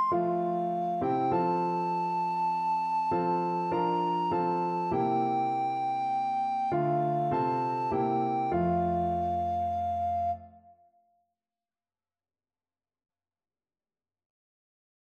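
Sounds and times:
alto recorder melody: 0.0s - 10.8s.

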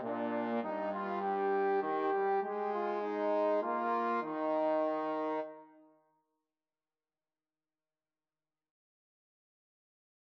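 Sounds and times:
trombone duet: 0.0s - 5.5s.

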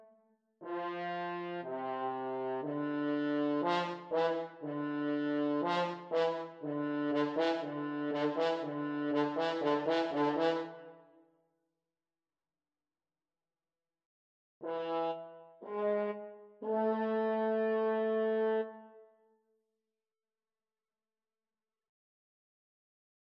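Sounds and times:
horn: 0.0s - 11.1s, 14.6s - 19.0s.

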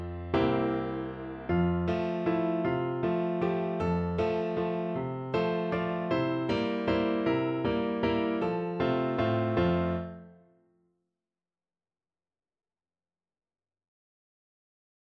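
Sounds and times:
piano piece: 0.0s - 10.6s.

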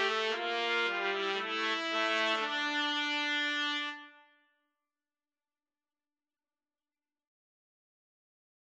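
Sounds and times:
trumpet trio playing a pastorale: 0.0s - 4.2s.

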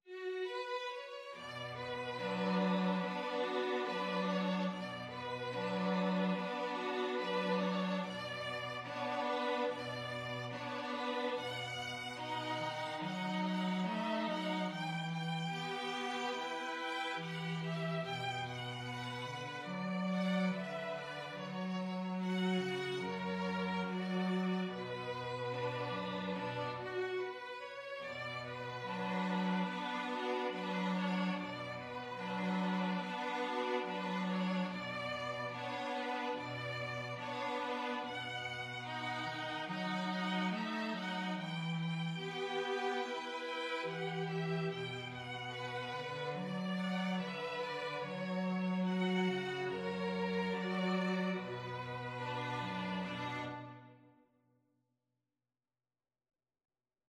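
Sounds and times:
two violins and cello playing a folk song: 0.0s - 54.0s.

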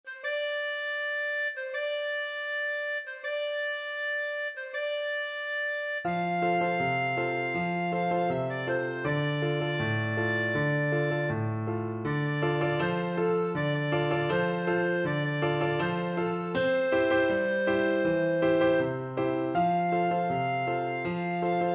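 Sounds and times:
clarinet: 0.0s - 21.7s.

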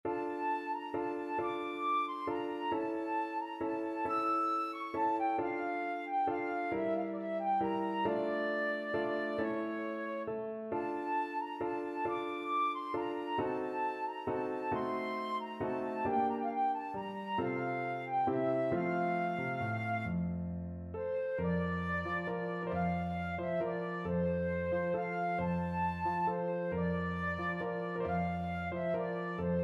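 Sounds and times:
flute: 0.1s - 20.3s, 21.0s - 29.6s.

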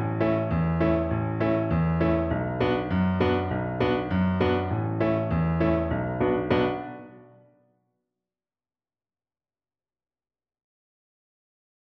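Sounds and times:
double bass melody: 0.0s - 6.9s.

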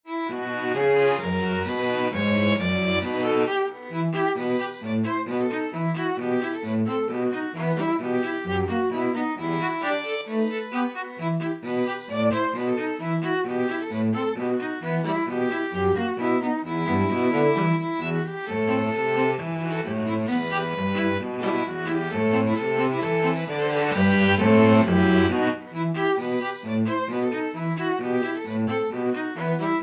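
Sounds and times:
string trio playing: 0.1s - 29.8s.

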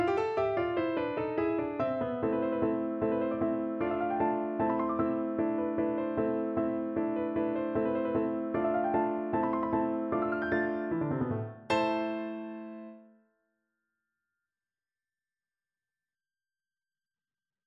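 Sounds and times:
arabesque piano piece: 0.0s - 13.2s.

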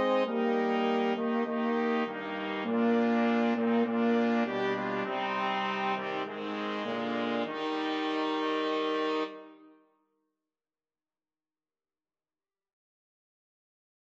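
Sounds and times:
flexible mixed ensemble of 4 players: 0.0s - 9.5s.

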